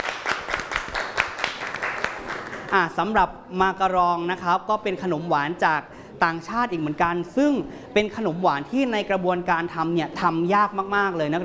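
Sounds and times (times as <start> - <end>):
small group clapping for a student's presentation: 0.0 - 2.9
speech: 2.7 - 11.4.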